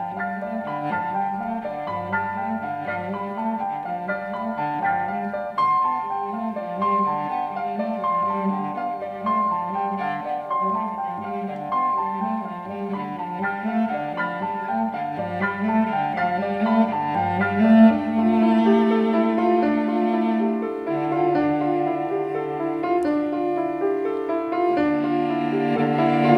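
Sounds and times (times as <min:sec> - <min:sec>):
cello: 0:00.0 - 0:26.3
piano: 0:00.0 - 0:26.3.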